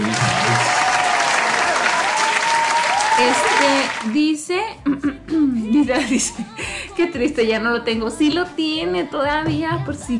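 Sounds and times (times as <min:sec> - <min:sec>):
audience applause: 0:00.0 - 0:04.2
speech: 0:03.2 - 0:10.1
laughter: 0:04.8 - 0:07.5.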